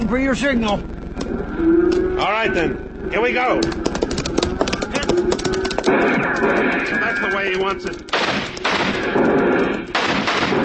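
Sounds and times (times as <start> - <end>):
speech: 0.1 - 3.9, 5.1 - 8.4
dense gunfire from a shootout in a western radio drama: 5.8 - 7.3, 8.0 - 10.6.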